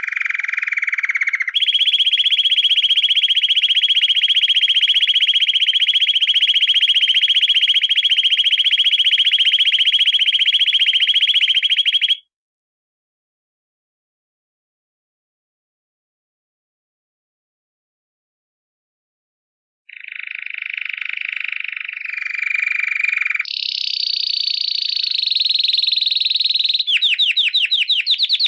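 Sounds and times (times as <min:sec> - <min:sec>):
canary singing: 0:00.0 - 0:12.2, 0:19.9 - 0:28.4.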